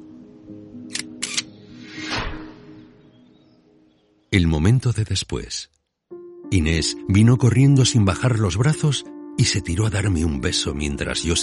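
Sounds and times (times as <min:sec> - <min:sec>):
camera shutter clicks: 0:00.9 - 0:01.5
speech: 0:04.4 - 0:05.8, 0:06.5 - 0:11.4.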